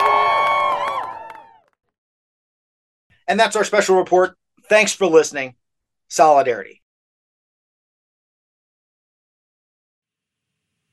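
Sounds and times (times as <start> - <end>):
crowd cheering and whooping: 0.0 - 1.8
scattered clapping: 0.0 - 1.8
speech: 3.3 - 6.8.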